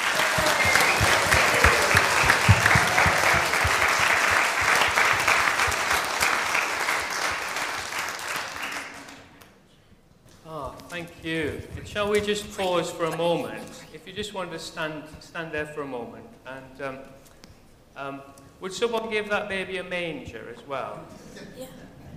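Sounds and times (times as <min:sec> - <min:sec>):
audience round of applause: 0:00.0 - 0:09.4
speech: 0:11.3 - 0:17.2, 0:18.0 - 0:21.8.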